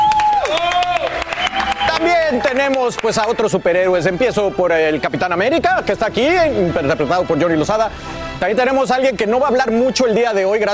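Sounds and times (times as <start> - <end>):
audience applause: 0.0 - 3.5
speech: 2.3 - 10.7.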